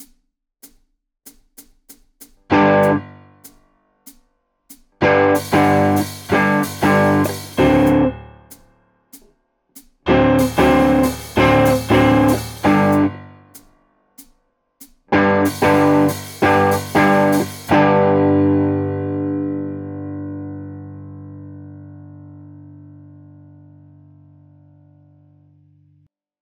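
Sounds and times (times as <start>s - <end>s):
blues music: 2.5s - 3.2s, 5.0s - 8.2s, 10.1s - 13.4s, 15.1s - 21.6s.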